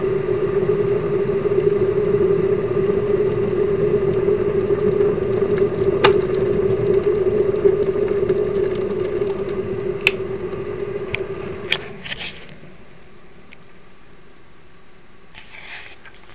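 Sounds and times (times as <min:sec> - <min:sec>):
kettle boiling: 0:00.2 - 0:12.0.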